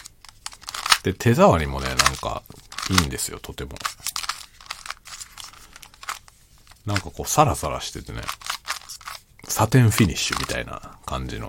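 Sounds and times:
puzzle cube being twisted: 0:00.0 - 0:11.4
speech: 0:01.0 - 0:04.2, 0:06.8 - 0:08.4, 0:09.5 - 0:11.4.

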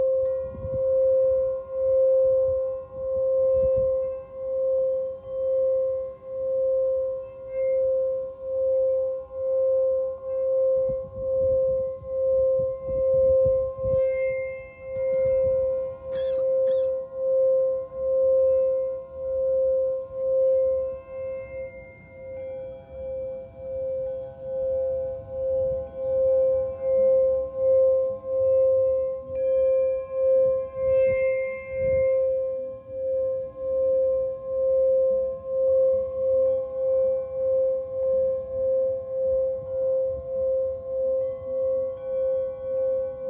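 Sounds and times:
singing bowl rubbed and rung: 0:00.0 - 0:43.2.

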